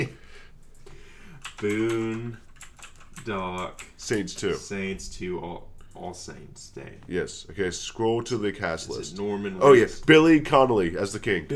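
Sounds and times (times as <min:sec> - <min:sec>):
typing on a computer keyboard: 0:01.4 - 0:04.6
speech: 0:01.6 - 0:02.4, 0:03.2 - 0:11.5.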